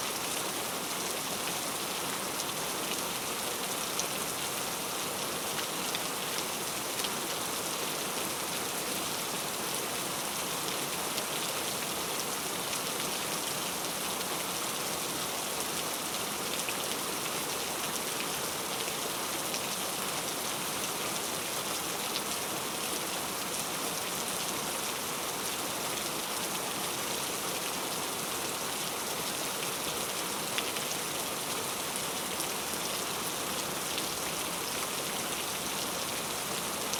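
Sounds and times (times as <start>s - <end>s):
loud heavy rain: 0.0s - 36.9s.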